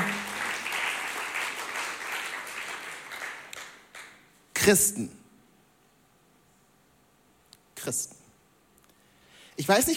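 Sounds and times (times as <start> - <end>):
applause: 0.0 - 4.3
speech: 4.7 - 5.2, 7.9 - 8.2, 9.6 - 9.9.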